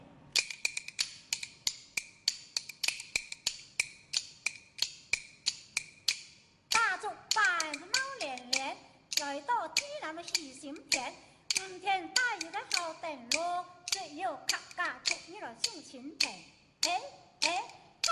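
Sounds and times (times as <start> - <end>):
bamboo clapper kuaiban rhythm being played: 0.4 - 18.0.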